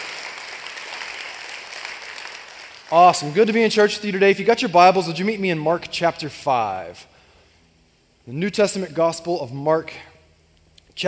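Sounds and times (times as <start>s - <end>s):
church congregation applauding to welcome guests: 0.0s - 4.2s
speech: 2.9s - 7.1s, 8.3s - 10.1s.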